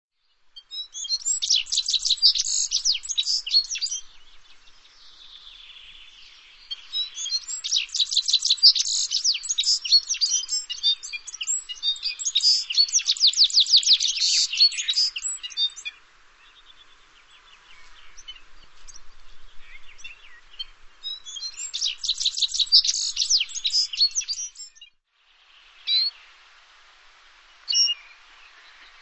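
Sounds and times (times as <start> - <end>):
soft hiss: 0.2 - 13.0, 13.6 - 24.4, 25.1 - 29.0
bird singing high twittering notes: 0.9 - 4.0, 6.6 - 15.9, 19.0 - 24.8.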